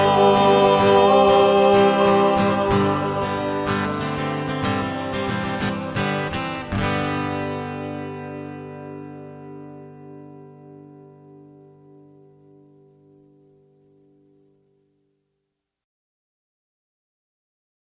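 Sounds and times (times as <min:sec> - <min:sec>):
mass chant singing: 0:00.0 - 0:06.3.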